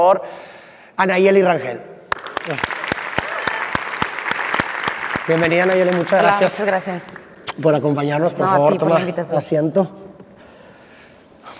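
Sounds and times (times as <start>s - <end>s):
speech: 0.0s - 2.8s, 5.3s - 10.0s
audience applause: 2.1s - 7.3s.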